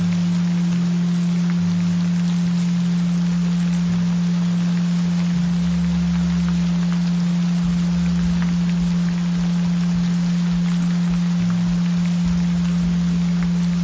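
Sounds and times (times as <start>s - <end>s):
gentle rain: 0.0s - 13.8s.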